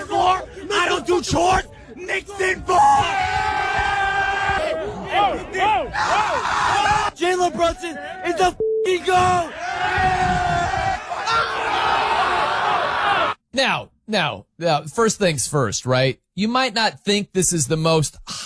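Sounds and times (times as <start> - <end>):
Knicks basketball fans cheering and shouting wildly: 0.0 - 13.4
speech: 1.2 - 3.9, 5.2 - 10.9, 13.5 - 18.4.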